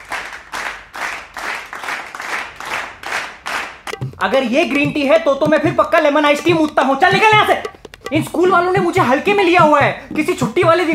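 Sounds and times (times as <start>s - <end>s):
rhythmic clapping: 0.0s - 10.9s
speech: 4.2s - 10.9s.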